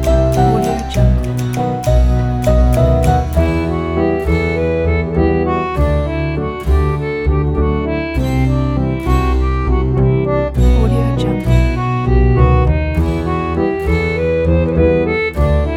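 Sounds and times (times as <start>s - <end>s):
French tango music: 0.0s - 15.7s.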